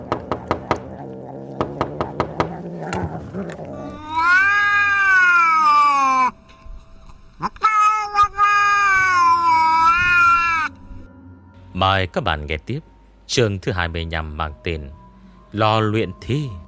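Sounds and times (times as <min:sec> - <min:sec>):
sharp repeated knocks: 0:00.0 - 0:00.9, 0:01.6 - 0:03.1
wild cat yowling and howling: 0:00.0 - 0:06.4, 0:07.4 - 0:10.7
speech: 0:11.8 - 0:16.6.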